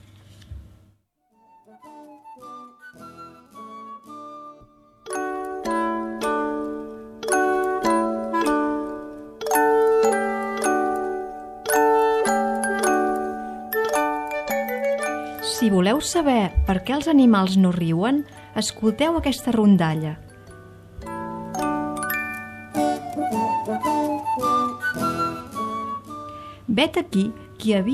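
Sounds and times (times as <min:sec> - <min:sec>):
instrumental English folk tune with bright bell-like notes: 0:04.9 - 0:26.6
speech: 0:15.7 - 0:20.2, 0:26.8 - 0:27.9.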